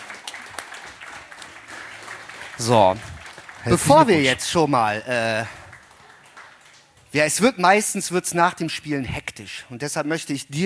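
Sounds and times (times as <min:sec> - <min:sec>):
faint audience applause for a contest winner: 0:00.0 - 0:07.1
speech: 0:02.6 - 0:05.6, 0:07.1 - 0:10.6.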